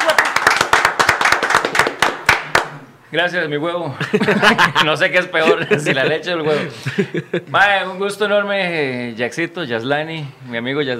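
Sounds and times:
small group clapping: 0.0s - 2.9s
speech: 3.1s - 10.9s
laughter: 4.0s - 7.6s.

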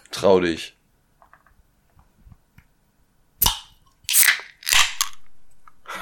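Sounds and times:
speech: 0.2s - 0.8s
beer bottle cap cracking open: 3.4s - 5.3s.

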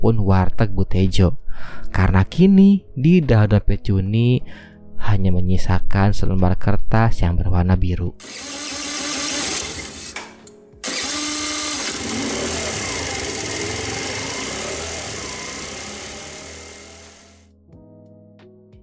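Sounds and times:
speech: 0.0s - 8.9s
old motorcycle engine being started and idling: 10.8s - 17.0s.

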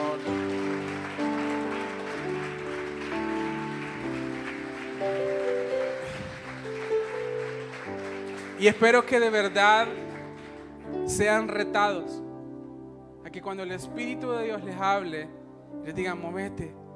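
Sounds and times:
audience applauding: 0.0s - 11.5s
speech: 8.6s - 10.0s, 11.1s - 12.2s, 13.3s - 16.8s.

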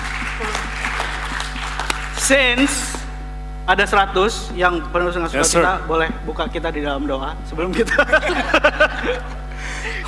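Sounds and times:
audience applause: 0.0s - 2.6s
speech: 2.3s - 3.0s, 3.7s - 10.0s
laughter: 7.6s - 10.0s.

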